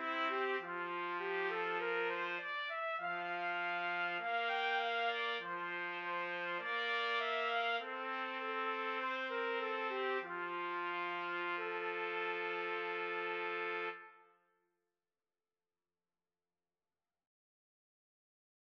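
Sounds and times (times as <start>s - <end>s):
trumpet trio karaoke: 0.0s - 14.4s.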